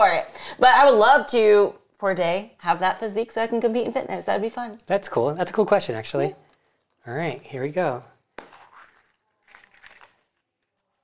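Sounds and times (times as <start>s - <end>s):
speech: 0.0s - 6.4s, 7.0s - 8.1s
paper crumpling: 8.5s - 11.0s.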